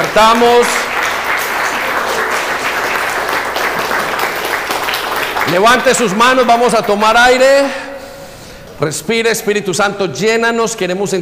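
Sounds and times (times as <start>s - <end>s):
audience applause: 0.0s - 7.2s
speech: 0.2s - 0.9s, 5.5s - 7.8s, 8.8s - 11.2s.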